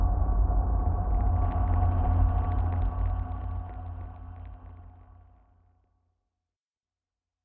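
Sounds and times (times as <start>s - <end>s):
drone: 0.1s - 5.6s.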